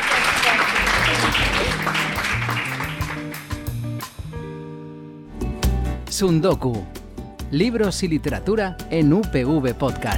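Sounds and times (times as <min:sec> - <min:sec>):
audience applause: 0:00.0 - 0:03.8
speech: 0:06.2 - 0:10.1.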